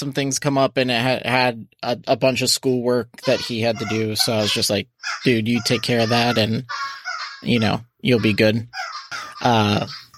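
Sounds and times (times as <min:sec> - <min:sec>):
speech: 0:00.0 - 0:10.0
dogs barking: 0:03.4 - 0:10.1.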